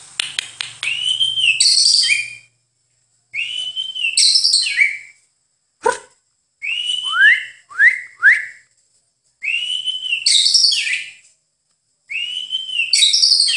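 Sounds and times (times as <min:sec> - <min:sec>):
White-rumped shama song with sustained wavering whistle: 0:00.2 - 0:02.6, 0:03.3 - 0:05.3, 0:06.6 - 0:08.7, 0:09.4 - 0:11.3, 0:12.1 - 0:13.5.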